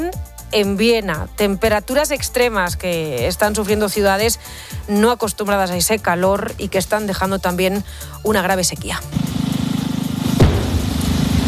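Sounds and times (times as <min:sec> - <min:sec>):
speech: 0:00.0 - 0:09.4
controlled explosion redirecting river water: 0:10.2 - 0:11.4
low throbbing rumble: 0:10.4 - 0:11.4.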